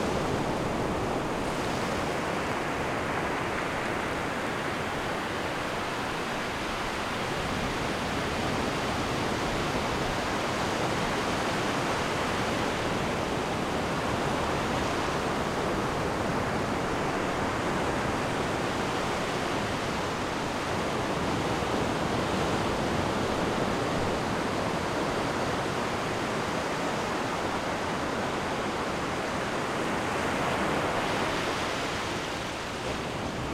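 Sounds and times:
big surf ocean waves: 0.0s - 33.5s.

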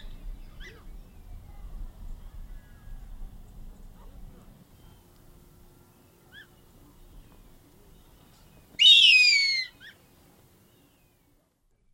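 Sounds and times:
harpy eagle calling in the eastern lowlands of South America: 8.8s - 10.0s.

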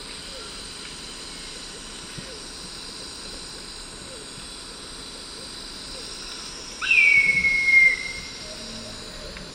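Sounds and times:
slate-colored hawk whistled call in the eastern lowlands of South America: 6.8s - 8.5s.

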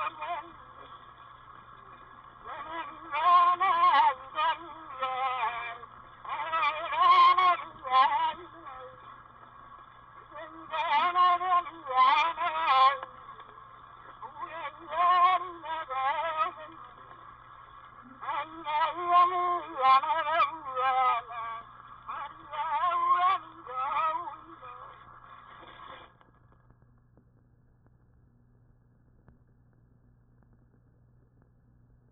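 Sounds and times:
Hawaiian name chant: 0.0s - 0.8s, 2.4s - 9.1s, 10.2s - 13.4s, 14.2s - 16.9s, 18.1s - 25.0s.

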